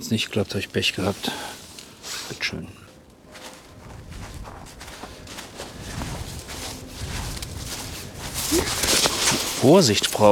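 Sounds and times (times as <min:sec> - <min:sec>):
speech: 0:00.0 - 0:01.6, 0:02.3 - 0:02.8, 0:09.6 - 0:10.2
small careful footsteps shuffling on slippery ground: 0:03.2 - 0:10.2.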